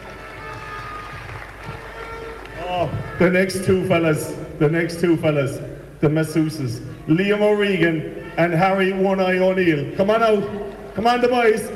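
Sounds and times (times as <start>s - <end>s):
audience applause as a man is introduced at an event: 0.0s - 3.2s
speech: 2.7s - 11.7s.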